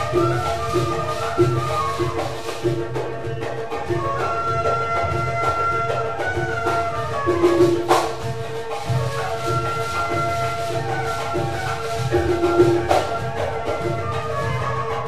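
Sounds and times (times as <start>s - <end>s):
nay flute in tanoura music: 0.0s - 15.0s
rebaba fiddle in tanoura music: 0.0s - 15.0s
tabla in tanoura music: 0.0s - 15.0s.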